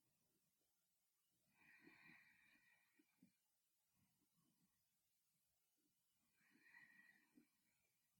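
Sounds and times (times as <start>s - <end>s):
sleeping breath: 1.6s - 3.3s, 6.4s - 7.8s.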